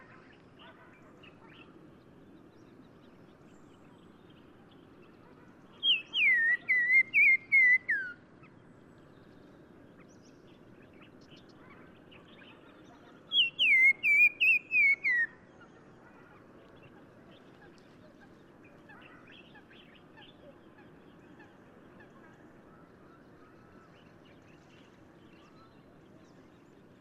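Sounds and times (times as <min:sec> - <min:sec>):
black-crowned tchagra whistled song in Morocco: 0:05.9 - 0:08.2, 0:13.4 - 0:15.3.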